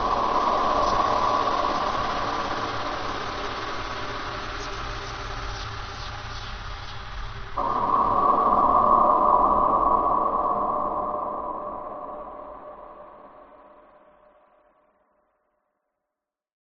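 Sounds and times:
horror fear drone: 0:00.0 - 0:05.4, 0:07.5 - 0:14.4.

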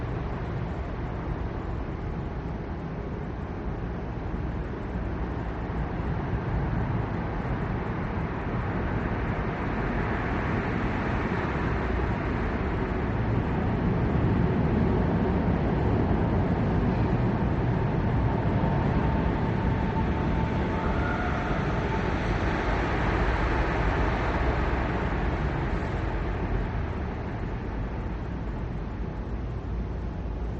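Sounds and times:
rare pedestrians on Prague street: 0:00.0 - 0:30.5
passing cars on wet Prague street late at night: 0:05.2 - 0:29.4.

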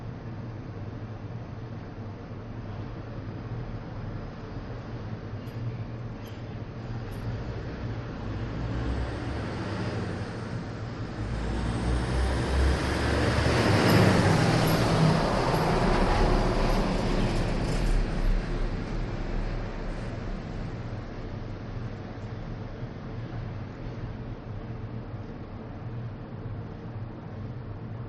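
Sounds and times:
city ambience: 0:00.0 - 0:28.0
garbage truck: 0:11.7 - 0:18.5.

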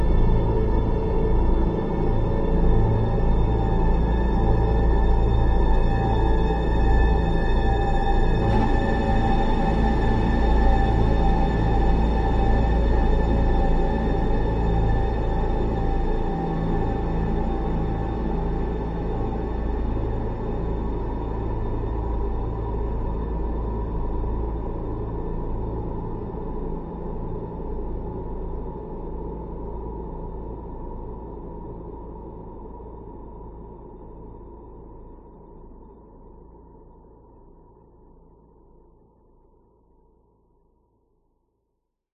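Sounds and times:
eerie airy horror synth pad drone: 0:00.0 - 0:39.0.

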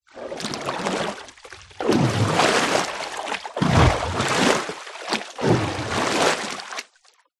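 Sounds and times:
deep water movement at the surface: 0:00.0 - 0:07.2.

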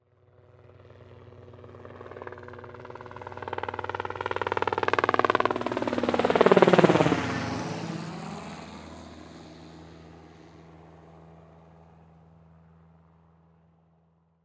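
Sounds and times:
helicopter passing by: 0:00.0 - 0:13.7.

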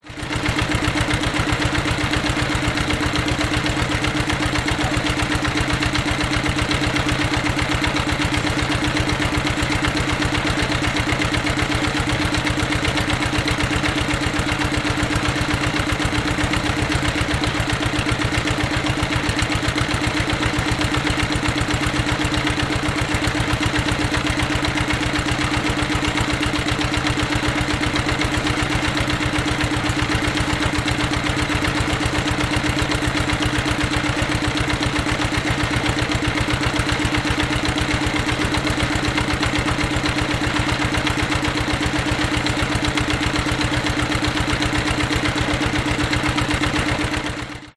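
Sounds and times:
old engine of an industrial deep water drilling machine: 0:00.1 - 0:47.7.

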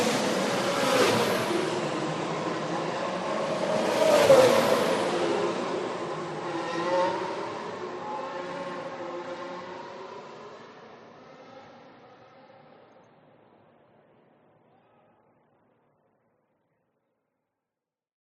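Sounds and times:
F1 car passing at speed on a race track: 0:00.0 - 0:12.8.

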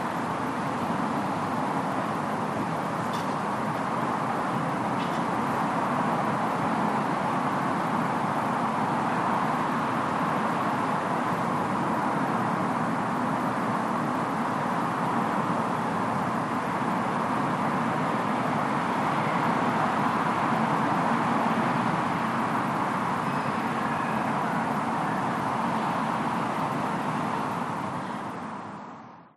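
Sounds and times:
distant evening voices in a residential area: 0:00.0 - 0:29.2
distant evening traffic in a residential area: 0:00.0 - 0:29.3
siren in a residential area: 0:23.0 - 0:27.0.

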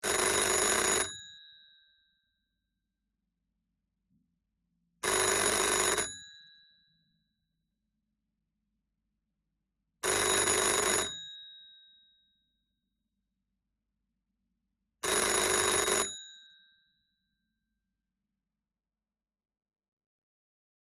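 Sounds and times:
antique wooden European standard telephone ringing: 0:00.0 - 0:01.6, 0:05.0 - 0:06.6, 0:10.0 - 0:11.4, 0:15.0 - 0:16.6.

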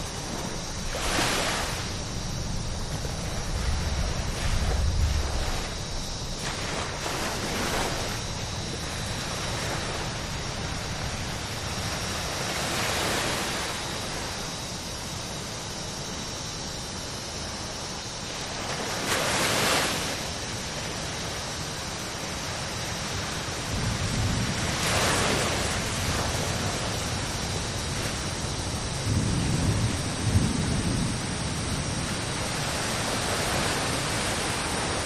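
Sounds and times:
approaching thunderstorm: 0:00.0 - 0:13.4, 0:23.5 - 0:35.0
ocean waves on a tropical beach: 0:00.0 - 0:30.5, 0:31.1 - 0:35.0
insects: 0:00.0 - 0:35.0.

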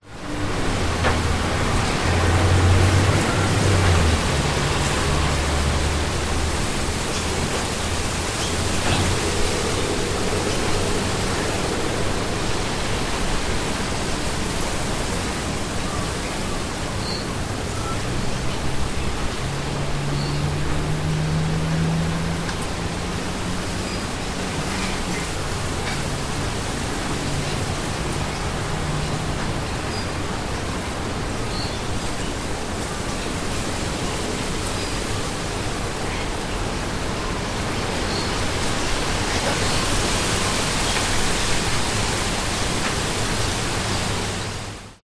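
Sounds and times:
wind in suburban trees: 0:00.0 - 0:45.0.

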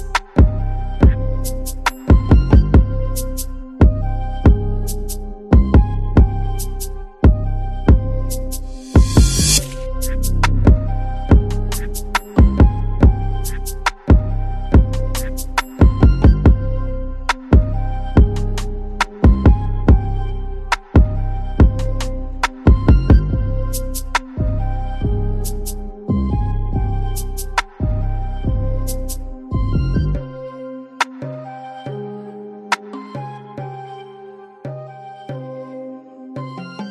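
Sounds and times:
tribal music at 140 bpm in C minor: 0:00.0 - 0:32.1.

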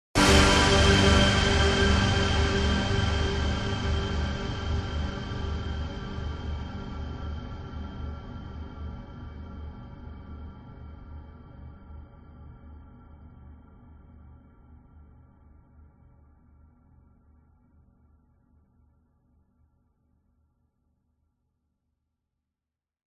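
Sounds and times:
dramatic sudden cinematic orchestral hit: 0:00.2 - 0:07.8.

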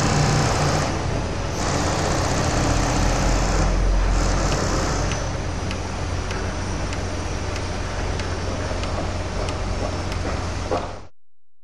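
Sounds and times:
construction ambience: 0:00.0 - 0:11.1.

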